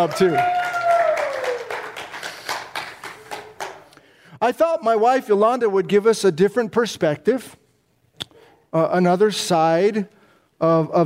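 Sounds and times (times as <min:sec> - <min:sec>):
speech: 0:00.0 - 0:00.6, 0:04.4 - 0:07.6, 0:08.7 - 0:11.0
audience applause: 0:00.0 - 0:03.9.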